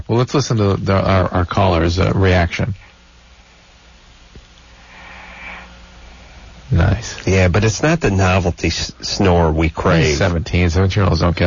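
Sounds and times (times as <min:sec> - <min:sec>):
speech: 0:00.1 - 0:02.9, 0:07.2 - 0:11.4
heavy breathing: 0:04.8 - 0:05.9.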